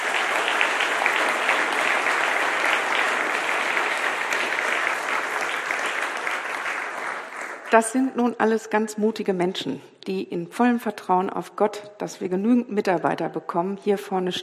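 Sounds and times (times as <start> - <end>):
audience applause: 0.0 - 7.8
speech: 7.7 - 14.4.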